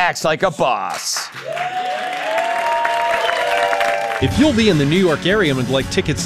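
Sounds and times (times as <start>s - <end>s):
speech: 0.1s - 2.1s, 4.2s - 6.2s
television studio audience clapping: 0.8s - 4.7s.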